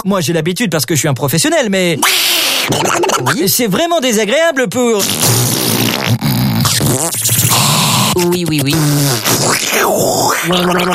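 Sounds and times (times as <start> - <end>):
speech: 0.0 - 6.3, 6.9 - 10.9
wet lip buzzing and raspberry-like sputters: 2.0 - 3.4, 5.0 - 10.9.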